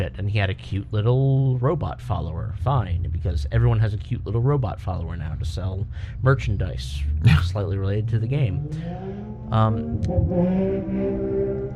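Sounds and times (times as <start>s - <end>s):
speech: 0.0s - 11.5s
motorcycle driving away: 8.4s - 11.7s.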